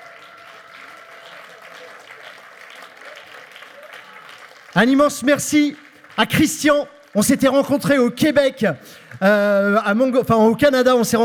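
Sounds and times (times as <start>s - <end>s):
crowd clapping: 0.0s - 10.0s
speech: 4.8s - 11.2s.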